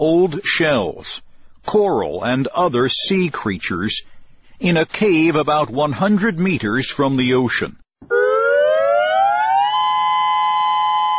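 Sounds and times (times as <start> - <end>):
speech: 0.0 - 7.8
tsunami warning civil defense siren winding up and wailing: 8.0 - 11.1.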